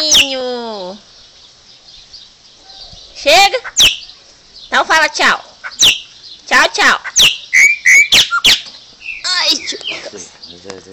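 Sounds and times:
light background hiss: 0:00.0 - 0:10.9
Chopi Blackbird song: 0:01.8 - 0:04.8, 0:05.7 - 0:06.4, 0:07.1 - 0:10.1
speech: 0:03.2 - 0:03.9, 0:04.8 - 0:05.5, 0:06.8 - 0:07.4, 0:10.6 - 0:10.9.

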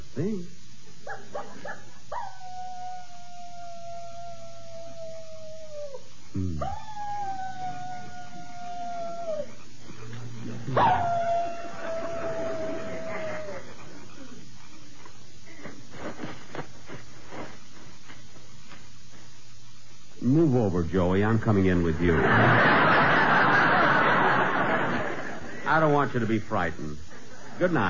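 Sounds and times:
speech: 0:00.2 - 0:02.3, 0:20.9 - 0:23.0, 0:25.7 - 0:27.8
person imitating coyote howls: 0:02.2 - 0:09.6, 0:10.7 - 0:13.7
laughter: 0:11.6 - 0:14.4, 0:22.0 - 0:25.7.

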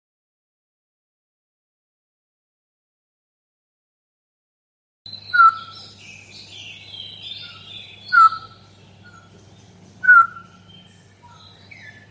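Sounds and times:
straw-headed bulbul song: 0:05.1 - 0:12.0.

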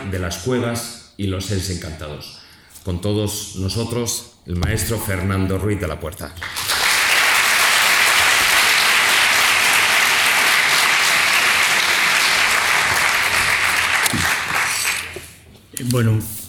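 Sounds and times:
speech: 0:00.1 - 0:06.6, 0:15.8 - 0:16.4
audience applauding a speaker being introduced for a talk: 0:06.4 - 0:15.2.

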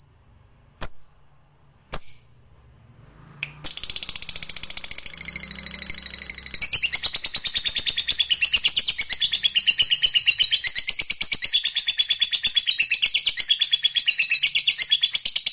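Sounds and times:
fighter-type lovebird singing energetically in high-pitched chatter: 0:03.6 - 0:15.4.

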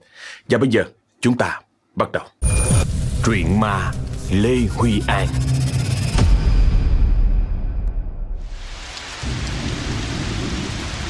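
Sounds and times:
speech: 0:00.5 - 0:02.4, 0:03.2 - 0:05.6
thunder rumbling: 0:06.3 - 0:11.0
heavy rain: 0:08.4 - 0:11.0.

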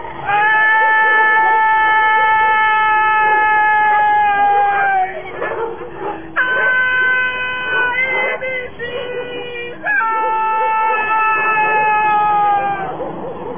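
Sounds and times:
woman's eerie wailing cry at night: 0:00.3 - 0:05.3, 0:06.3 - 0:12.9.

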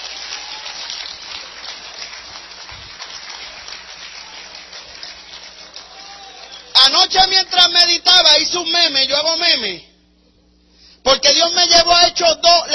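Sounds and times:
crowd applauding loudly: 0:00.0 - 0:07.4
speech: 0:06.9 - 0:09.9, 0:11.1 - 0:12.7.

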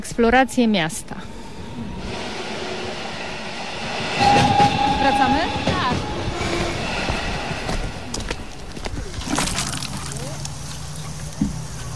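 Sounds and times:
speech: 0:00.0 - 0:01.3
low rumble: 0:00.8 - 0:09.9
water running from a garden hose in a community vegetable garden: 0:09.1 - 0:11.9.

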